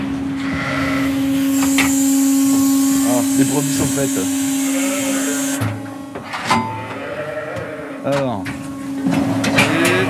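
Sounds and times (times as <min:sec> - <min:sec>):
large red farm feeding machine running: 0:00.0 - 0:07.0, 0:08.2 - 0:10.0
hissing bursts: 0:01.0 - 0:05.7
speech: 0:03.4 - 0:04.5.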